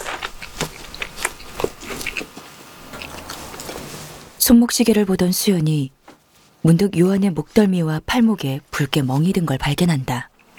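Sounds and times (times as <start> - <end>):
person chewing a large mouthful of bread: 0.0 - 4.0, 10.4 - 10.5
speech: 4.5 - 6.0, 6.6 - 10.3.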